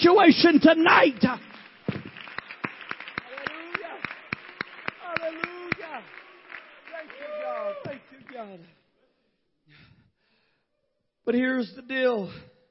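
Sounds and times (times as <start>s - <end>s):
speech: 0.0s - 1.5s, 5.2s - 6.2s, 7.0s - 8.8s, 11.2s - 12.5s
crowd clapping hands in rhythm: 0.4s - 8.8s.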